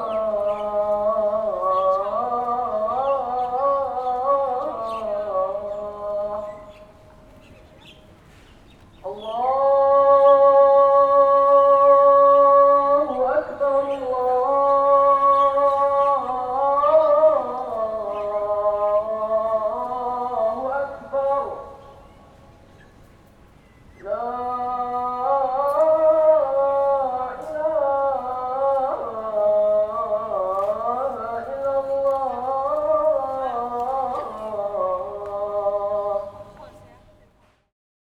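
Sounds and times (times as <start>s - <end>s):
muezzin call at Sultan Mosque in Singapore: 0.0s - 8.1s, 9.0s - 22.6s, 24.0s - 37.2s.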